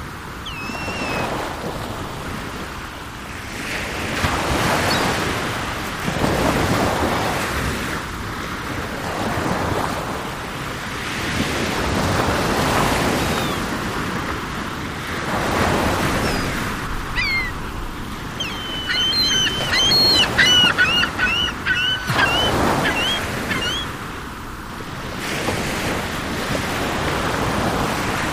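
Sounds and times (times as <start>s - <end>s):
ocean ambience: 0.0s - 28.3s
seagulls: 0.4s - 1.4s, 13.1s - 13.7s, 16.0s - 24.0s.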